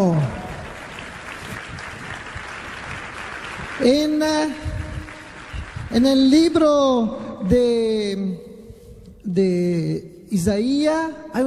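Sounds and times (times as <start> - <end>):
audience applauding: 0.0 - 6.8
speech: 3.8 - 4.7, 6.0 - 8.4, 9.3 - 11.4.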